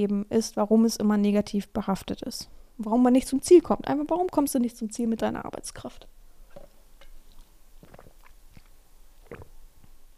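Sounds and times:
speech: 0.0 - 6.2
person drinking from a Stanley cup, sipping and swallowing: 6.4 - 10.0.

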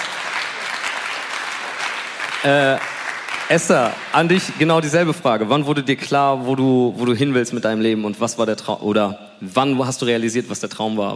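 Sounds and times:
audience applause: 0.0 - 5.2
speech: 2.4 - 2.9, 3.5 - 11.1.

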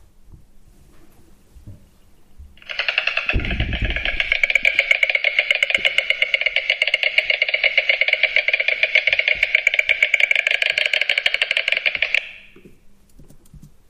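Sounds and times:
white stork bill clattering: 2.6 - 12.6.

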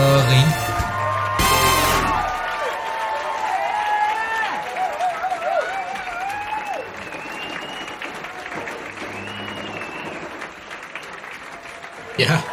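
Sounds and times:
audience applause for a stand-up comedian: 0.0 - 12.5
high whoops: 0.6 - 10.4.

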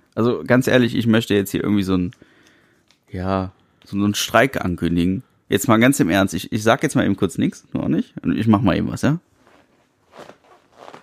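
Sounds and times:
speech: 0.2 - 2.3, 3.1 - 9.3
faux leather armchair creaking: 9.4 - 11.0.

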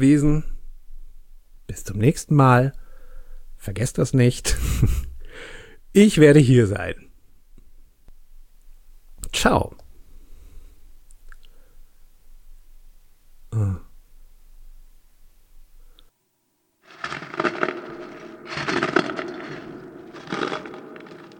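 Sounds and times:
speech: 0.0 - 0.5, 1.7 - 2.8, 3.6 - 7.1, 9.3 - 9.8
creaking near the door: 16.9 - 21.3.

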